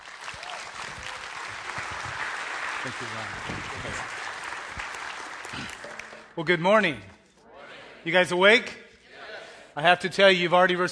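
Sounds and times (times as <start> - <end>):
church service audience applause welcoming a guest speaker: 0.0 - 6.4
speech: 2.8 - 4.2, 5.5 - 7.2, 8.0 - 8.8, 9.8 - 10.9.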